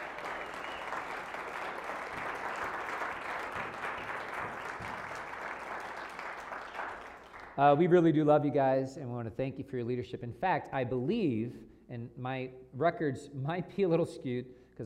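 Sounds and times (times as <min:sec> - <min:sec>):
audience applause: 0:00.0 - 0:07.6
speech: 0:07.6 - 0:14.8.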